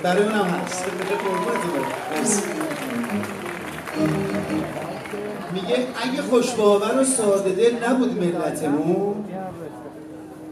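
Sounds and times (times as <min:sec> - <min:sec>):
audience applause: 0:00.0 - 0:06.6
speech: 0:00.0 - 0:10.0.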